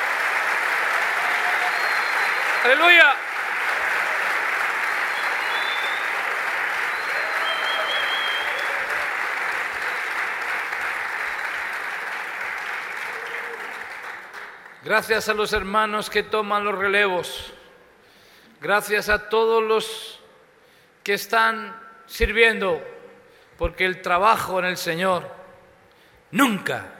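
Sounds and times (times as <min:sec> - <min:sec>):
audience applause: 0:00.0 - 0:14.8
speech: 0:02.6 - 0:03.3, 0:14.8 - 0:17.6, 0:18.6 - 0:20.2, 0:21.0 - 0:22.9, 0:23.6 - 0:25.4, 0:26.3 - 0:26.9.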